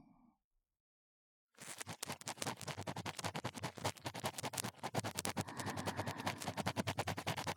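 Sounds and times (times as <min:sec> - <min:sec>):
shallow ASMR ear cleaning on the left: 0:01.6 - 0:07.5.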